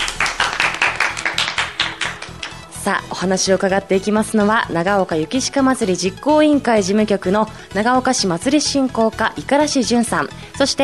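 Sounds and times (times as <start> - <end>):
applause: 0.0 - 2.6
speech: 2.8 - 10.8.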